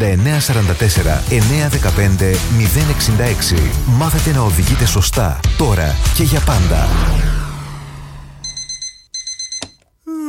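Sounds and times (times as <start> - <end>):
speech: 0.0 - 7.4
low hum: 6.4 - 8.8
rising tone: 6.6 - 9.0
alarm clock beeping: 8.4 - 9.8.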